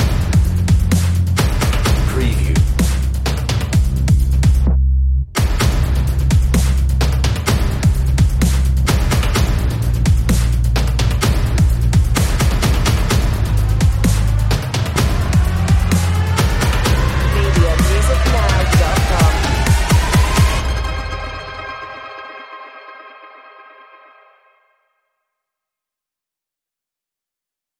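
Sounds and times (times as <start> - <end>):
bass drums: 0.0 - 21.4.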